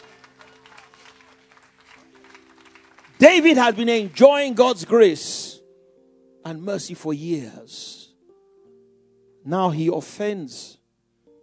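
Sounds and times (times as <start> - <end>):
audience clapping: 0.0 - 4.9
speech: 3.2 - 5.4, 6.5 - 8.0, 9.4 - 10.8.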